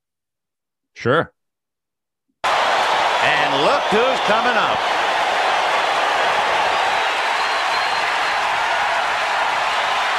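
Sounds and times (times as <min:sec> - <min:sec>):
speech: 0:01.0 - 0:01.4, 0:03.5 - 0:05.0
big stadium crowd cheering: 0:02.4 - 0:10.1.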